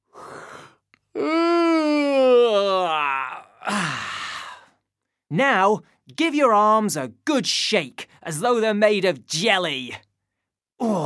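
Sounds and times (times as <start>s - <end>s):
person yawning: 0.3s - 4.8s, 10.8s - 11.0s
speech: 1.2s - 1.4s, 5.3s - 10.0s.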